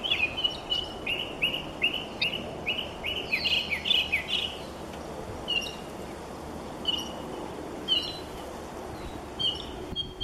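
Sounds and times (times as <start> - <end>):
mockingbird singing rising chirps: 0.0 - 4.8, 5.5 - 5.9, 6.8 - 8.3, 9.0 - 10.2.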